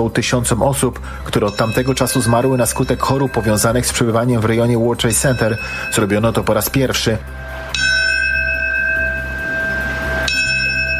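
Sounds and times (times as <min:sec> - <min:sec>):
speech: 0:00.0 - 0:07.9
memorial bell tolling: 0:01.4 - 0:10.9.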